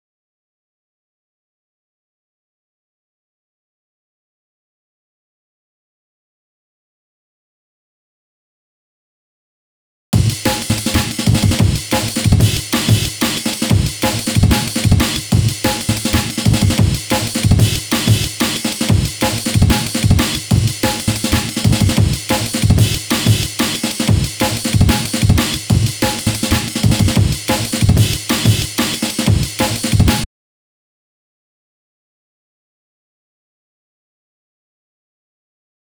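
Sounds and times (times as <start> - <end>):
drum break: 10.2 - 30.3.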